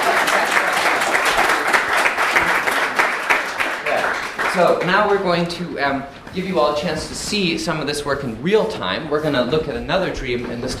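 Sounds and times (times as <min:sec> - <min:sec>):
audience applause: 0:00.0 - 0:05.3
speech: 0:04.6 - 0:10.7.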